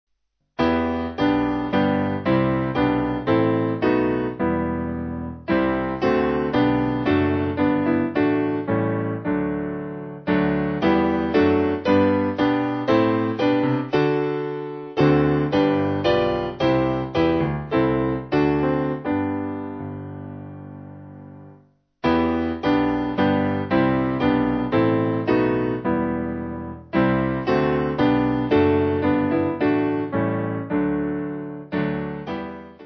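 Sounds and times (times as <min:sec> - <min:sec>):
piano backing music for churches: 0:00.6 - 0:32.8.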